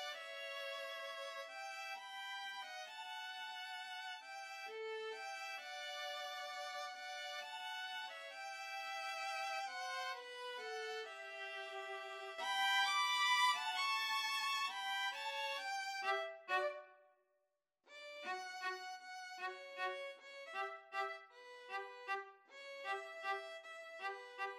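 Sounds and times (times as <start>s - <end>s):
string trio playing a waltz: 0.0s - 16.9s, 18.0s - 24.5s.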